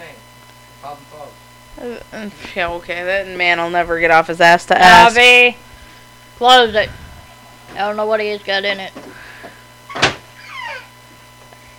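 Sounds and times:
speech: 0.8s - 5.7s, 6.4s - 7.0s, 7.7s - 9.2s
door kicked shut with a thud: 9.9s - 10.3s.

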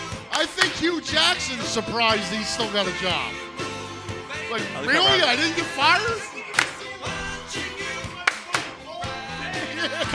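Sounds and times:
clapping: 0.3s - 0.8s, 6.6s - 6.9s, 8.3s - 8.8s
speech: 0.5s - 3.5s, 4.5s - 6.4s, 9.8s - 10.1s
laughter: 9.5s - 10.1s.

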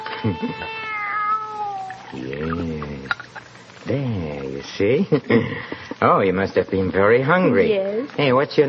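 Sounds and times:
kitten meowing: 0.0s - 2.7s
speech: 0.2s - 0.9s, 2.1s - 3.2s, 4.8s - 8.6s.

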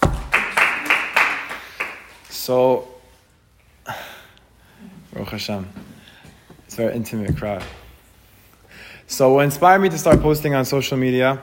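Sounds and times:
applause: 0.2s - 2.3s
speech: 2.4s - 2.9s, 5.2s - 5.9s, 6.7s - 7.8s, 9.1s - 11.4s.

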